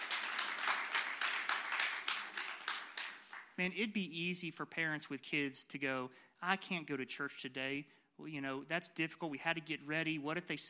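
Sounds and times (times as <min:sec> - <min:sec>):
audience clapping for parents in church: 0:00.0 - 0:03.7
speech: 0:03.6 - 0:10.6.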